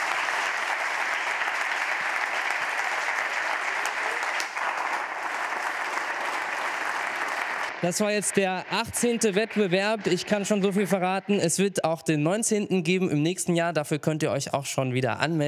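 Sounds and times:
audience applause: 0.0 - 11.6
speech: 7.8 - 15.4.

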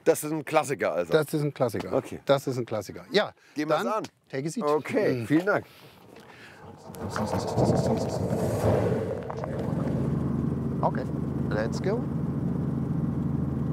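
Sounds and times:
speech: 0.0 - 5.9, 6.8 - 9.4, 10.8 - 12.2
Robinson helicopter engine starting up: 6.0 - 13.7.

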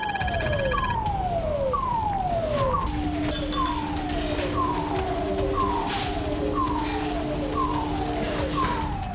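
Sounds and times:
fire station aircraft crash alarm with repeating falling tone: 0.0 - 9.1
steady lower drone: 1.1 - 9.1.

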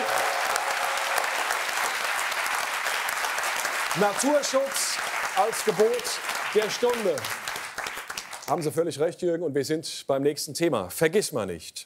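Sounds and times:
applause: 0.0 - 8.8
speech: 3.9 - 7.4, 8.5 - 11.8.

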